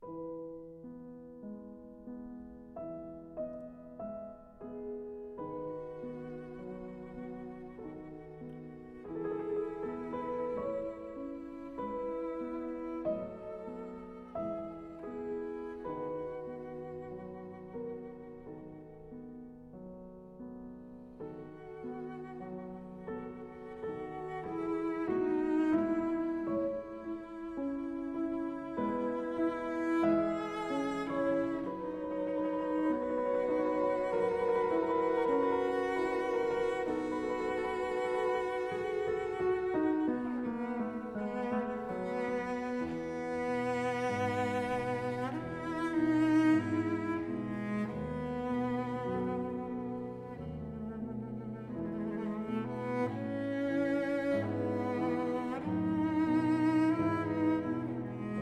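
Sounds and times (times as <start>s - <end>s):
cello and piano sonata slow movement: 0.0s - 58.4s.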